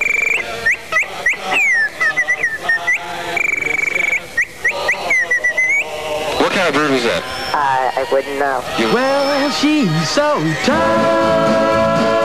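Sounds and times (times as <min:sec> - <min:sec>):
person whistling imitated bird calls: 0:00.0 - 0:05.9
wavering throaty squawks: 0:00.0 - 0:10.6
speech: 0:08.0 - 0:12.1.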